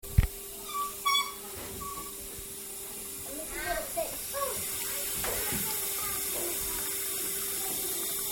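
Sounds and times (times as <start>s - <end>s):
washing hands: 1.0s - 8.3s.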